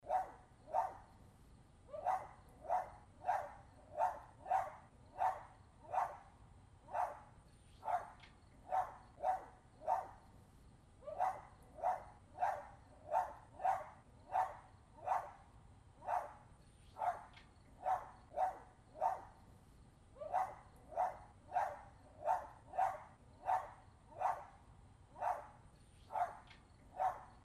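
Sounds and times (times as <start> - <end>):
yappy dog: 0.1 - 1.0, 1.9 - 6.2, 7.8 - 10.1, 11.0 - 15.4, 17.0 - 19.3, 20.2 - 24.5, 25.2 - 25.5, 26.1 - 27.3.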